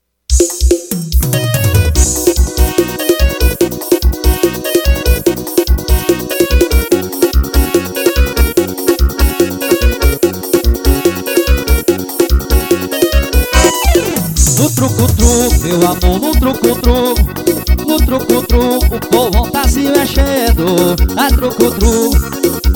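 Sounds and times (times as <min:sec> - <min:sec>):
forró music: 0:00.3 - 0:22.7.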